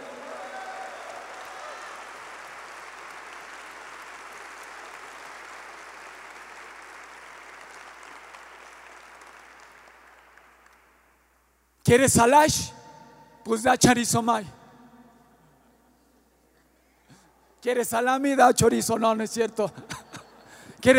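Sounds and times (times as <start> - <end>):
audience applauding loudly: 0.0 - 11.3
speech: 11.9 - 12.8, 13.5 - 14.6, 17.6 - 20.0
laughter: 19.8 - 20.8.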